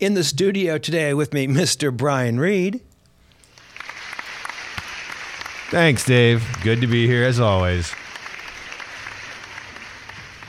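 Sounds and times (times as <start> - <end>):
speech: 0.0 - 2.9, 5.7 - 8.0
applause: 3.5 - 10.4.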